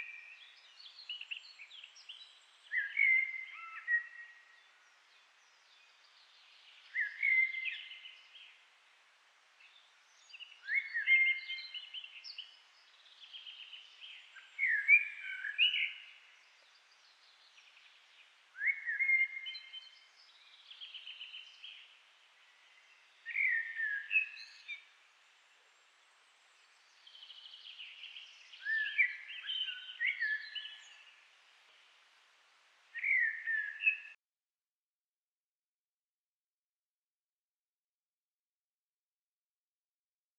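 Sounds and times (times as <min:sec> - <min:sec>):
common blackbird singing: 0:00.0 - 0:08.6, 0:09.6 - 0:25.0, 0:26.0 - 0:31.8, 0:32.9 - 0:34.2.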